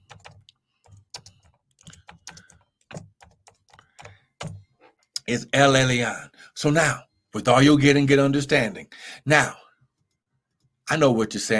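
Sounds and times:
typing on a computer keyboard: 0:00.0 - 0:04.6
speech: 0:05.3 - 0:09.6, 0:10.9 - 0:11.5.

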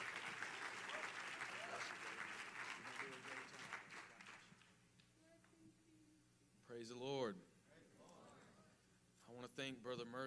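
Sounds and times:
audience applause: 0:00.0 - 0:04.7
speech: 0:06.8 - 0:07.5, 0:09.3 - 0:10.2.

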